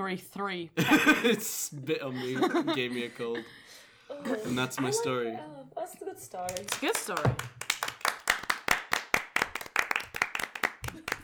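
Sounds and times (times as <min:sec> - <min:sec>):
speech: 0:00.0 - 0:07.6
laughter: 0:00.8 - 0:03.5
audience clapping: 0:06.4 - 0:11.2.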